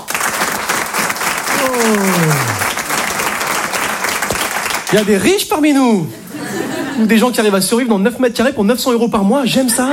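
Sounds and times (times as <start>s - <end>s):
audience applause: 0.0s - 5.4s
speech: 1.7s - 2.2s, 4.9s - 6.2s, 7.0s - 9.9s
laughter: 6.0s - 7.4s.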